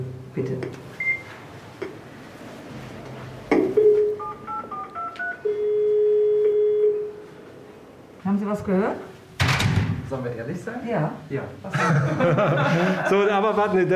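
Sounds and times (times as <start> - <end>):
speech: 0.0 - 0.9, 8.5 - 9.1, 10.1 - 13.9
intercom doorbell long steady buzzing ring tone: 3.8 - 7.3
thump: 9.4 - 10.1
laughter: 11.7 - 13.9.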